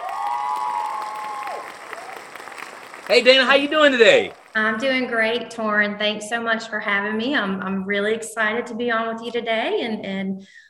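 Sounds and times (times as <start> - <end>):
applause greeting a podcast guest: 0.0 - 4.6
speech: 3.1 - 10.6.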